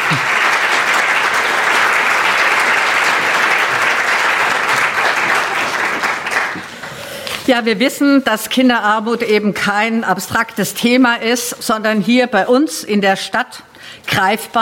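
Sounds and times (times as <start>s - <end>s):
audience applause: 0.0s - 7.0s
speech: 7.5s - 14.6s.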